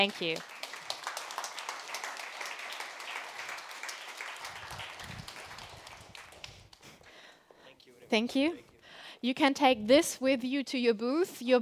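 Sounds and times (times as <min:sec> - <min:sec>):
speech: 0:00.0 - 0:00.5, 0:08.1 - 0:11.5
audience applause: 0:00.0 - 0:06.8.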